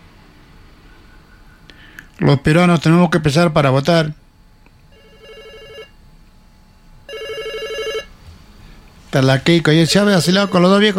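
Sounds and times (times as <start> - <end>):
speech: 2.2 - 4.2, 9.2 - 10.9
telephone ringing for an incoming call: 4.9 - 6.0, 7.1 - 8.1, 9.8 - 10.9.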